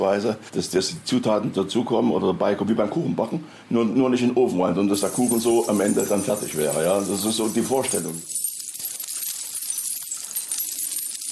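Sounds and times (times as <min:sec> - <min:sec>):
speech: 0:00.0 - 0:08.4
glass ornaments clinking on chains: 0:05.0 - 0:11.3.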